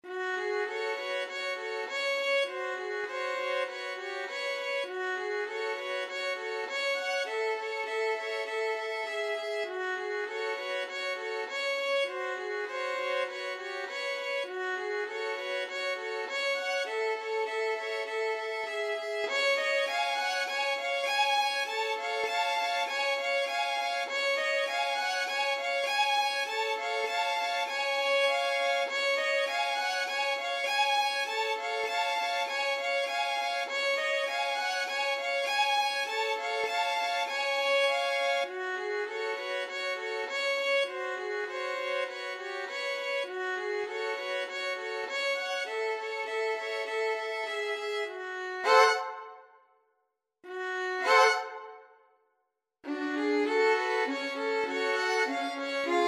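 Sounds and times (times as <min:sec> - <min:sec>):
violin trio: 0:00.0 - 0:49.5, 0:50.4 - 0:51.9, 0:52.8 - 0:56.0.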